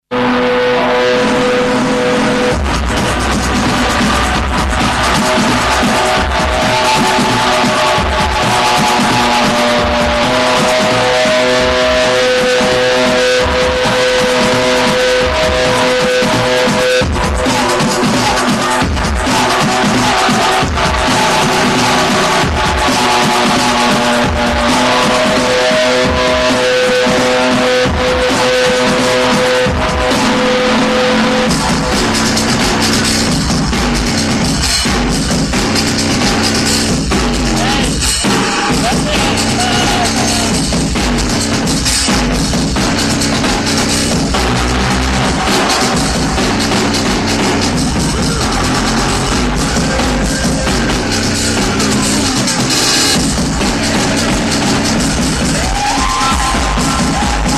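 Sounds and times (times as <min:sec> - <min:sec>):
live dubstep noise: 0:00.0 - 0:57.5.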